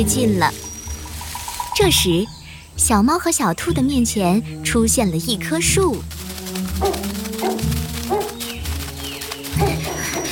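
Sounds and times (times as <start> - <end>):
speech: 0.0 - 0.7, 1.8 - 7.6
dog barking: 6.8 - 8.5, 9.6 - 10.3.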